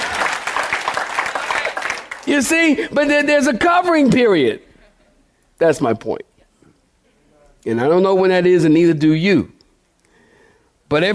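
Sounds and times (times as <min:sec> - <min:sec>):
audience clapping hands: 0:00.0 - 0:02.8
speech: 0:02.3 - 0:04.7, 0:05.6 - 0:06.3, 0:07.6 - 0:09.6, 0:10.9 - 0:11.1.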